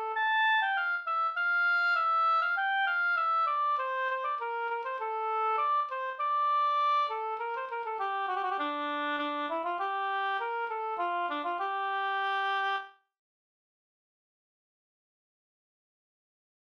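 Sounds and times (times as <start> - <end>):
slangpolska folk dance tune: 0.0 - 12.8.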